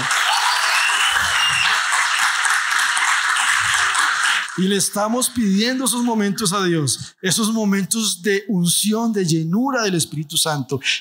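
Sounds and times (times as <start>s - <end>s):
audience applause for worship band: 0.0s - 6.0s
speech: 4.6s - 10.9s.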